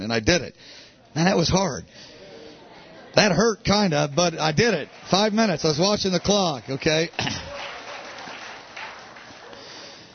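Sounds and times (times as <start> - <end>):
speech: 0.1 - 2.1, 3.1 - 7.5
people clapping: 3.7 - 10.1.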